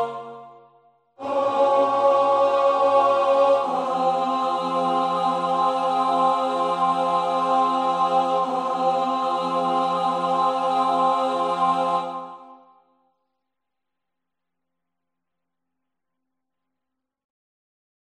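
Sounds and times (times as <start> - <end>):
highlighted tenor singing: 0.0 - 0.4, 1.2 - 12.5.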